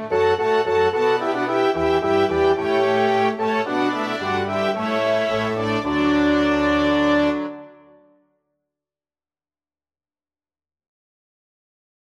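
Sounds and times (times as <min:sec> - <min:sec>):
orchestra playing: 0:00.0 - 0:07.8.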